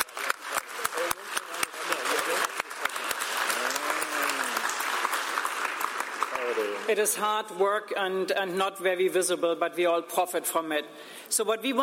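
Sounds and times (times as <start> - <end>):
audience applause for translators: 0.0 - 6.9
speech: 6.9 - 11.8.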